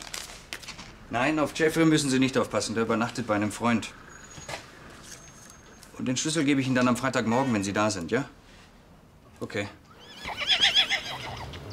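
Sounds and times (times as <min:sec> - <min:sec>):
speech: 0:01.1 - 0:04.0, 0:06.0 - 0:08.4, 0:09.4 - 0:09.8
Irish pony whinnying: 0:09.9 - 0:11.7.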